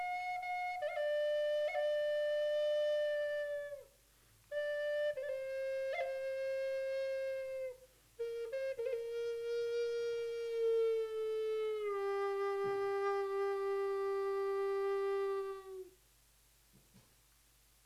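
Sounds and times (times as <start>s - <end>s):
Native American flute in G tuned to 432 Hz: 0.0s - 16.0s.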